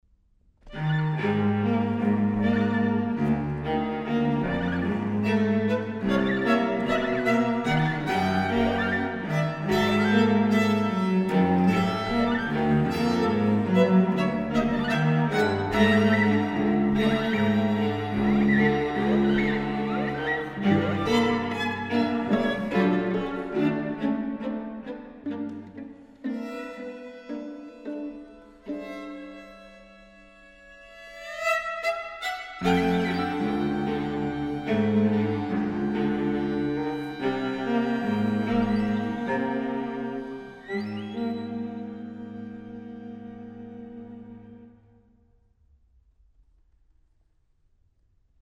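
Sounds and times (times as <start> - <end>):
string quartet playing short pieces: 0.7 - 45.0.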